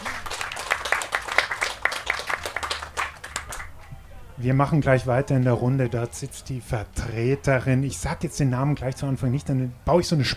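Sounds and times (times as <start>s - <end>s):
audience applause: 0.0s - 3.9s
speech: 4.4s - 10.3s.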